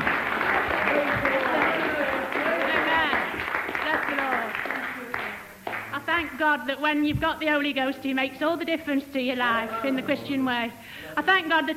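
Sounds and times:
audience clapping: 0.0s - 6.4s
speech: 6.4s - 11.7s.

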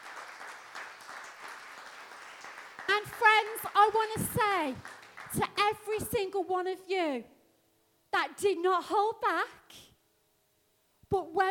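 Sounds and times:
audience applause: 0.0s - 5.5s
speech: 3.0s - 7.3s, 8.2s - 9.8s, 11.1s - 11.4s.

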